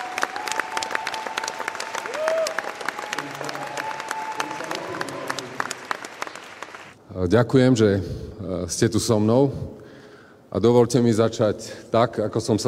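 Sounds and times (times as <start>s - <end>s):
applause from a campaign headquarters crowd: 0.0s - 7.0s
speech: 7.2s - 9.8s, 10.6s - 12.6s.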